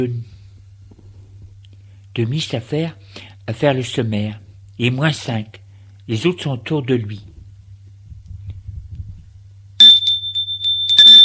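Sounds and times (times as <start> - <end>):
speech: 0.0 - 0.3, 2.2 - 7.3
faint low hum: 0.0 - 11.2
doorbell ringing: 9.8 - 11.2.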